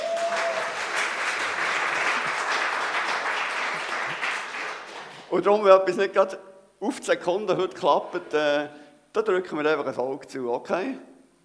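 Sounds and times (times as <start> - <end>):
audience applause: 0.0 - 5.3
speech: 5.3 - 11.1.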